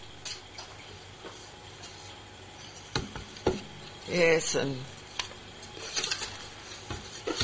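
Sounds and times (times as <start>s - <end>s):
speech: 4.1s - 5.0s
draw entries stirred by hand in a box, papery rustling: 5.6s - 7.4s.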